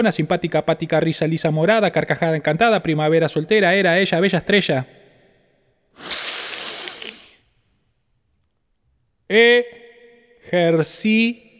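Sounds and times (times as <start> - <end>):
speech: 0.0 - 5.0, 6.0 - 6.2, 9.3 - 9.8, 10.5 - 11.4
long airy breath in a breathing exercise: 6.0 - 7.4.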